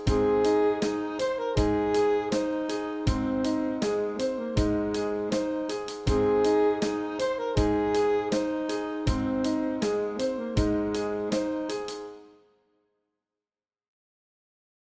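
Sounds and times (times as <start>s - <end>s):
saxophone study: 0.1s - 11.8s.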